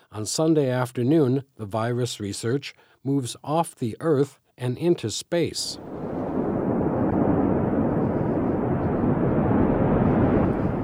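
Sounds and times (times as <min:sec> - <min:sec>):
speech: 0:00.1 - 0:06.1
rocket launch roar: 0:05.8 - 0:10.8.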